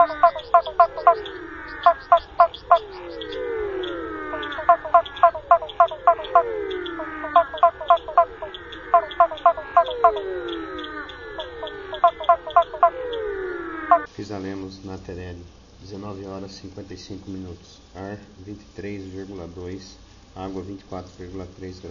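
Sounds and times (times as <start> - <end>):
Physalaemus nattereri calling: 0.0 - 14.1.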